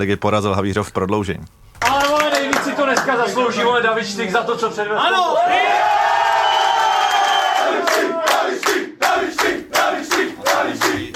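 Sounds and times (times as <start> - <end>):
speech: 0.0 - 2.1, 2.9 - 5.9
rhythmic claps or stomps: 1.8 - 3.3, 7.6 - 11.1
team shouting and cheering in a locker room after a win: 5.0 - 11.1
whoops: 5.2 - 8.4.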